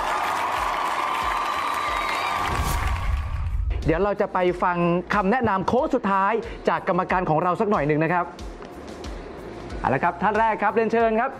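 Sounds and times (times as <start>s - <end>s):
audience applause: 0.0s - 3.6s
speech: 3.8s - 8.5s, 9.8s - 11.3s.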